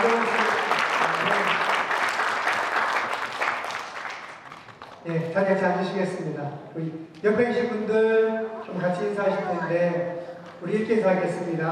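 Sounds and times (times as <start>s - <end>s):
audience applause at a church worship service: 0.0s - 5.0s
speech: 5.4s - 11.7s.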